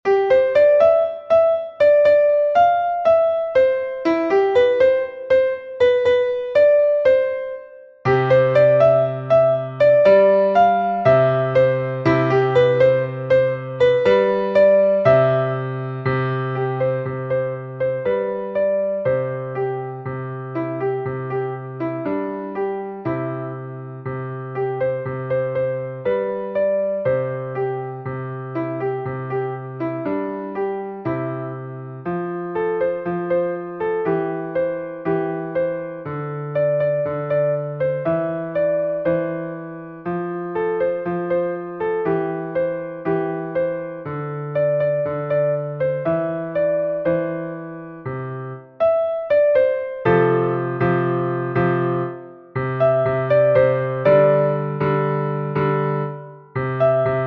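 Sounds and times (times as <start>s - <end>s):
easy piano: 0.0s - 57.2s.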